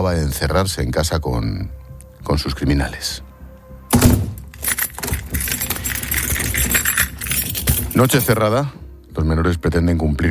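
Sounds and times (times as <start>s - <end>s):
speech: 0.0s - 3.3s, 8.0s - 10.2s
keys jangling in a door lock: 3.9s - 8.4s.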